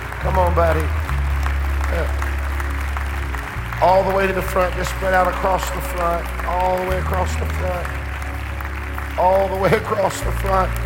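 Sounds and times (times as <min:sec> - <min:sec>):
audience clapping: 0:00.0 - 0:10.8
speech: 0:00.3 - 0:01.0, 0:01.9 - 0:02.2, 0:03.8 - 0:08.0, 0:09.2 - 0:10.8.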